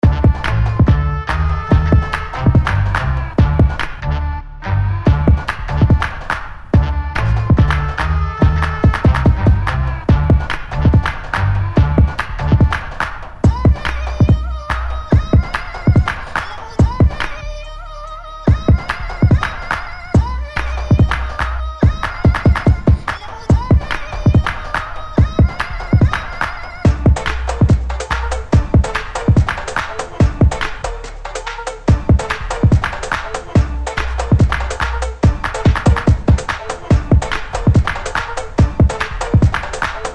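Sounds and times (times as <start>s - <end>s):
beats: 0.0s - 4.4s, 5.1s - 17.7s, 18.5s - 40.1s.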